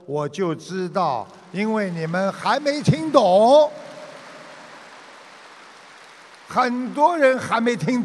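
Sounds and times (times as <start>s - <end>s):
speech: 0.1s - 3.9s, 6.5s - 8.0s
audience clapping: 0.7s - 8.0s.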